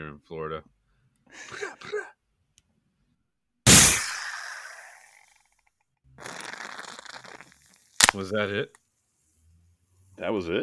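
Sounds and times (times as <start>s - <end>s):
speech: 0.0s - 2.2s, 8.1s - 8.8s, 10.2s - 10.6s
AK rifle gunshot sound effect: 3.7s - 4.7s.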